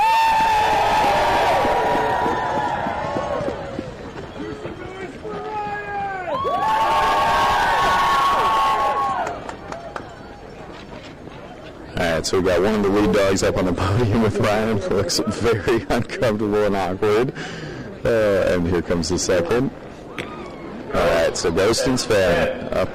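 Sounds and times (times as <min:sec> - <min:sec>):
crowd cheering: 0:00.0 - 0:10.4
speech: 0:12.3 - 0:19.8, 0:20.9 - 0:22.9.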